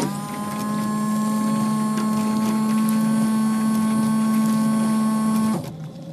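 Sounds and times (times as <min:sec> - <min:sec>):
car windshield washer spraying water: 0:00.1 - 0:05.7.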